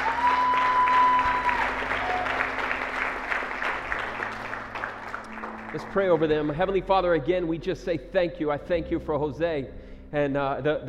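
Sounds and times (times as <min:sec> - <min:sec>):
audience clapping: 0:00.0 - 0:06.9
speech: 0:05.8 - 0:10.8.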